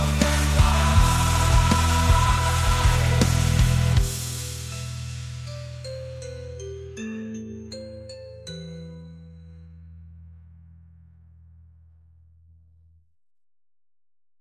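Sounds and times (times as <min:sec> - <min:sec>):
opera rock music: 0:00.0 - 0:05.8.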